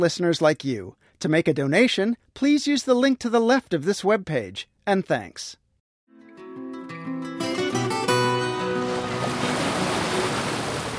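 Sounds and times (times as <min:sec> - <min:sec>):
speech: 0:00.0 - 0:05.6
sustained musical tones: 0:06.1 - 0:10.6
sea waves: 0:07.7 - 0:10.9.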